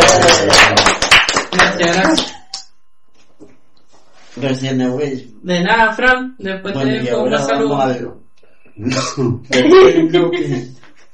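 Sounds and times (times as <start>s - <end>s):
laughter: 0.0s - 1.0s, 8.9s - 11.1s
applause: 0.0s - 2.7s
speech: 4.4s - 8.2s, 8.8s - 10.8s.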